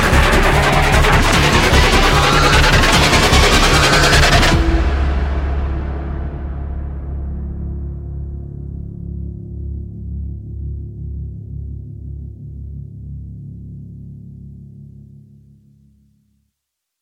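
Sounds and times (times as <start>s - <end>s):
phaser pulse: 0.0s - 6.1s.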